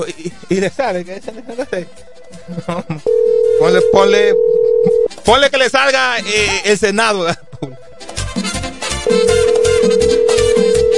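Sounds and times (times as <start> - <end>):
speech: 0.0 - 7.5
rhythmic music: 0.0 - 10.9
laughter: 1.3 - 3.1
telephone ringing with an incoming call on a radio show: 3.1 - 5.1, 9.1 - 10.9.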